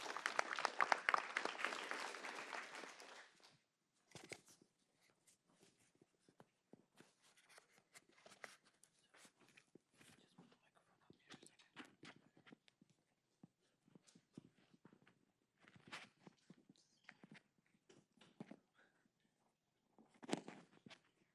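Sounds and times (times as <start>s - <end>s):
audience applause: 0.0s - 3.4s.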